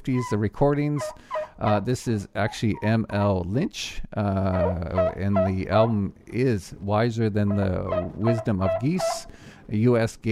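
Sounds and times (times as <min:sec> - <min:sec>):
turkey hen calls from a 1940s–50s U.S. game fowl culture recording: 0:00.0 - 0:02.9, 0:04.4 - 0:06.0, 0:07.4 - 0:09.4
speech: 0:00.0 - 0:10.3.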